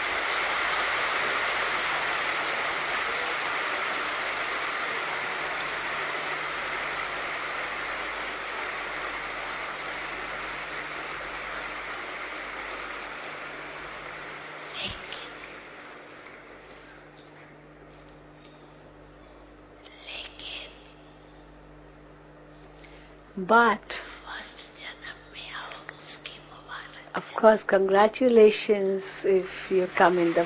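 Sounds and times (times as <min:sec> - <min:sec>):
audience clapping: 0:00.0 - 0:16.8, 0:29.8 - 0:30.4
speech: 0:23.4 - 0:24.1, 0:27.4 - 0:30.4.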